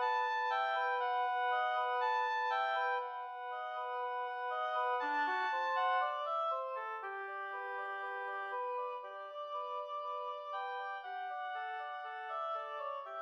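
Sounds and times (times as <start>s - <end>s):
two oboes playing a study: 0.0s - 13.2s.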